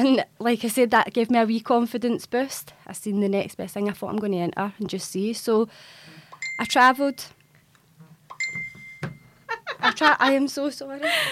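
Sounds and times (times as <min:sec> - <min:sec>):
speech: 0:00.0 - 0:07.4, 0:09.8 - 0:11.3
mobile phone ringing: 0:06.4 - 0:07.3, 0:08.3 - 0:09.5.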